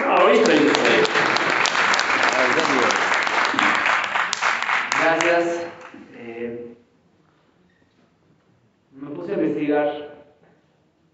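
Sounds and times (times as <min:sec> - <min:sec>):
audience applause: 0:00.0 - 0:06.0
speech: 0:00.3 - 0:00.8.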